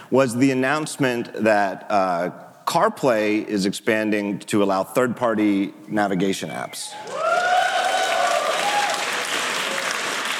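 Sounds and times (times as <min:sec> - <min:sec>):
speech: 0:00.1 - 0:07.2
keynote audience applause: 0:07.0 - 0:10.3.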